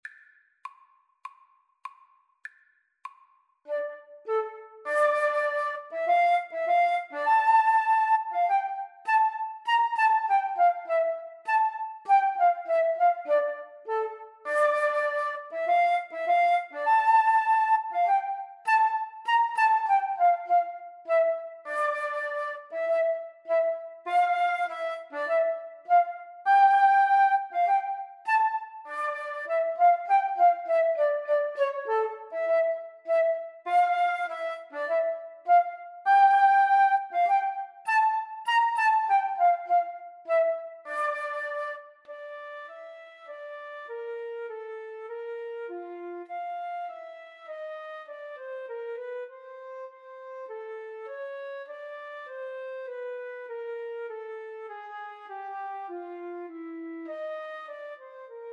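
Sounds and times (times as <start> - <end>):
flute duet: 3.1 - 58.5.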